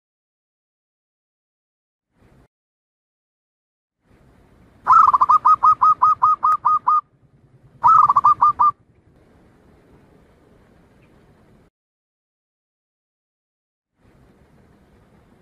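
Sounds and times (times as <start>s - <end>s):
Zebra dove staccato cooing song: 4.9s - 7.1s, 7.7s - 8.8s.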